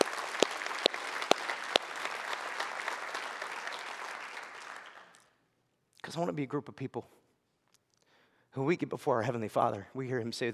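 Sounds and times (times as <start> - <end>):
audience applause: 0.0 - 5.2
speech: 6.1 - 7.2, 8.5 - 10.5.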